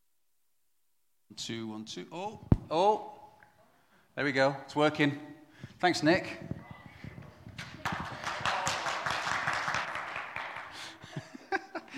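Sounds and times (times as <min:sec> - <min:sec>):
speech: 0:01.3 - 0:03.2, 0:04.2 - 0:06.5
feeble round of applause: 0:07.5 - 0:11.3
laughter: 0:10.2 - 0:11.9.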